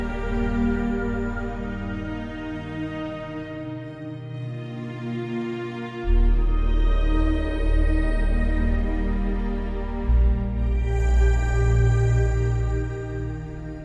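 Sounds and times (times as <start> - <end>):
ambient abyss drone: 0.0 - 5.0, 6.1 - 13.8.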